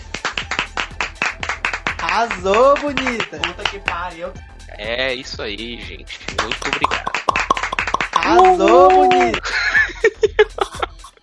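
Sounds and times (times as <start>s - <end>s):
quick hand claps: 0.0s - 4.1s, 6.3s - 9.4s
speech: 2.1s - 7.2s, 8.3s - 9.6s
laughter: 6.1s - 11.2s.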